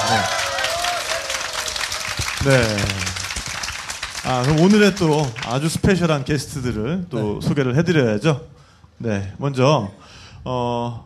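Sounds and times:
audience applause: 0.0 - 5.6
speech: 2.4 - 3.2, 4.2 - 11.0.

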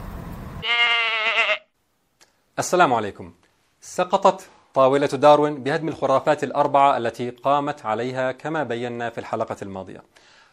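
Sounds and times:
goat bleating: 0.6 - 1.7
speech: 2.6 - 10.4.

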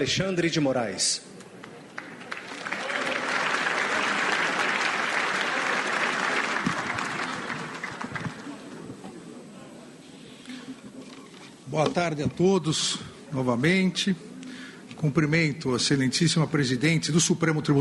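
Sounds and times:
speech: 0.0 - 1.3, 11.7 - 14.3, 15.0 - 17.7
audience applause at ceremony: 2.0 - 8.8.

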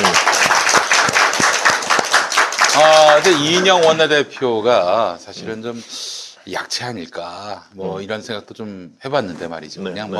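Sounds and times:
hand clapping: 0.0 - 4.5
speech: 3.2 - 10.1.

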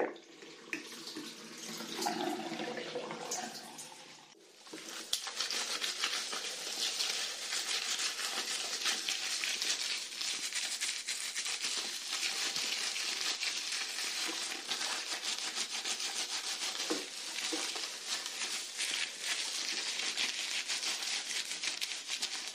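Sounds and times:
running water rinsing hair: 0.0 - 22.5
hair lathering and rubbing with shampoo: 4.5 - 22.5.

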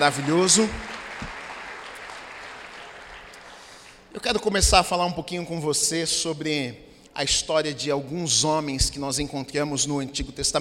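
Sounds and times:
speech: 0.0 - 1.3, 4.2 - 10.6
audience applauding: 0.0 - 4.2.

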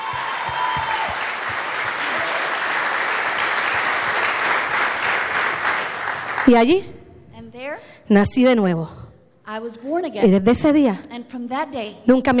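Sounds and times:
crowd applause at a religious service: 0.0 - 6.5
speech: 6.5 - 7.0, 7.8 - 12.3.

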